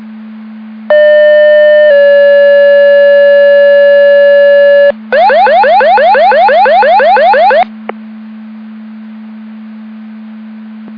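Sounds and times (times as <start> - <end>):
siren: 0.9 - 7.7.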